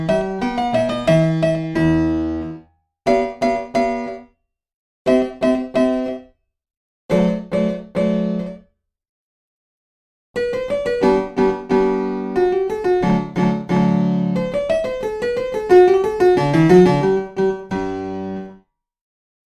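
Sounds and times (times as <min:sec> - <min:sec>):
piano minuet: 0:00.0 - 0:04.4, 0:05.1 - 0:06.4, 0:07.1 - 0:08.7, 0:10.4 - 0:18.6.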